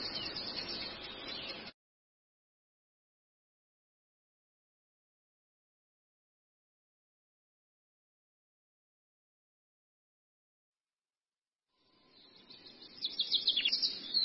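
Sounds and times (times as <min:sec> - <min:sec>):
Long-tailed shrike twittering song: 0:00.0 - 0:01.7, 0:11.8 - 0:14.2.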